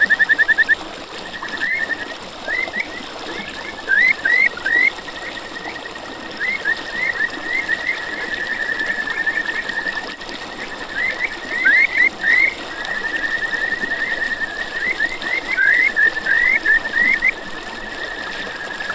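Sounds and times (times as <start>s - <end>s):
kajika frog calling: 0.0s - 18.9s.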